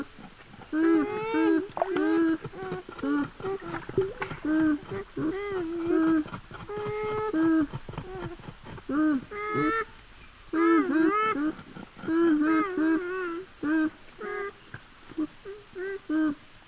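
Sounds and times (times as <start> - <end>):
beaver whiny mumbles: 0.7 - 9.9, 10.5 - 14.5.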